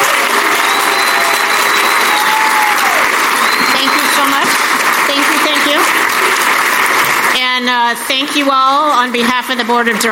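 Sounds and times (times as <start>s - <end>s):
audience applause: 0.0s - 8.8s
faint high gliding whistle-like tone: 0.6s - 2.3s
speech: 7.7s - 10.0s.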